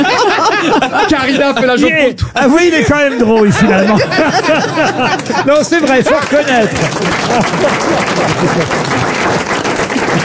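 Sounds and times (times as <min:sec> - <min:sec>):
laughter: 0:00.0 - 0:10.2
speech: 0:01.2 - 0:09.5
audience applause: 0:04.5 - 0:10.2.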